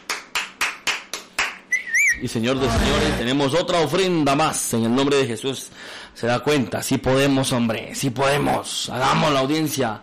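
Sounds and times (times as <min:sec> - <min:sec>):
crowd clapping in rhythm: 0:00.0 - 0:01.7
speech: 0:02.2 - 0:10.0.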